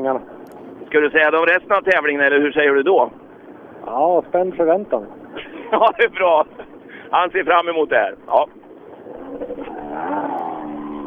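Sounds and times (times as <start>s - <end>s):
speech: 0.0s - 3.2s, 3.8s - 8.6s
laughter: 3.9s - 8.5s
R3 rally car engine roaring past: 8.9s - 11.0s.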